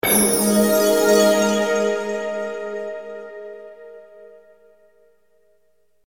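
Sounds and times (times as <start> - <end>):
menu jingle: 0.0 - 2.5.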